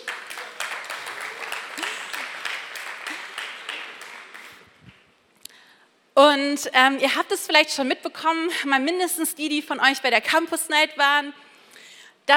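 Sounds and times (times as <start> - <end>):
audience applause: 0.0 - 4.8
speech: 6.2 - 11.4.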